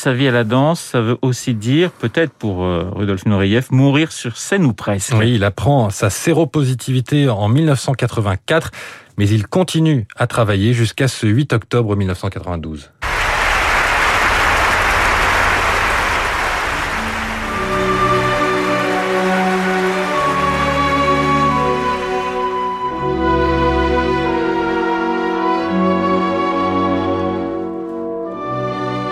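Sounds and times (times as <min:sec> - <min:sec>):
speech: 0:00.0 - 0:13.0
audience applause at an opera premiere: 0:13.0 - 0:22.5
sustained orchestral music: 0:13.0 - 0:29.1.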